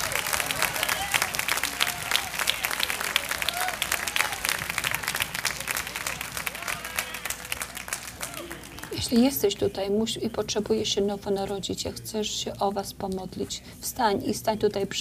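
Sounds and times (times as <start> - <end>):
audience applause: 0.0 - 9.1
speech: 9.1 - 14.9.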